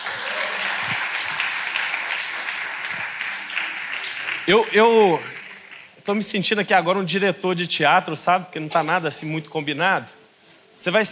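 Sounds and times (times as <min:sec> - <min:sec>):
crowd applauding: 0:00.0 - 0:06.0
speech: 0:04.5 - 0:05.4, 0:06.1 - 0:10.2, 0:10.8 - 0:11.1.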